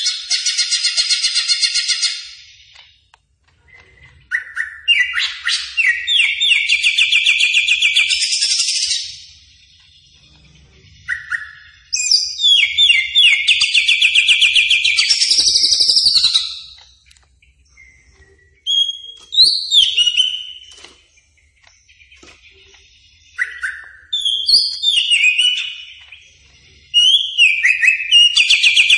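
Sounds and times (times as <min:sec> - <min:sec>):
greater green leafbird song: 0:00.0 - 0:28.9.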